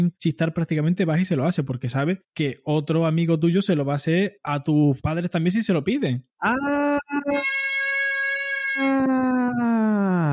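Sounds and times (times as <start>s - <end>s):
speech: 0.0s - 7.6s, 8.8s - 10.2s
siren wailing: 6.7s - 10.3s.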